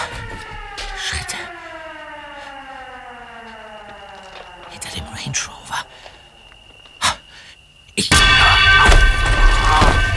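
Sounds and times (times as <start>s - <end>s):
house alarm siren: 0.0s - 10.1s
speech: 5.2s - 5.6s, 8.0s - 8.5s.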